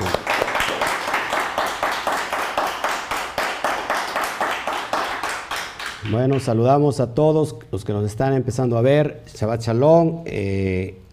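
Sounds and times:
audience applause: 0:00.0 - 0:06.5
speech: 0:06.1 - 0:11.0.

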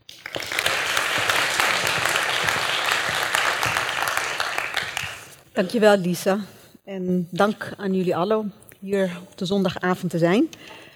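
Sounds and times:
warm audience applause: 0:00.0 - 0:05.4
speech: 0:05.6 - 0:10.9.

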